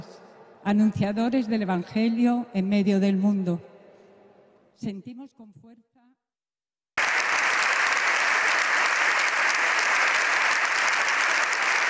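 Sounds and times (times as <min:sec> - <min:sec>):
speech: 0:00.7 - 0:03.7, 0:04.8 - 0:05.9
applause in the Congress after a speech: 0:07.0 - 0:11.8.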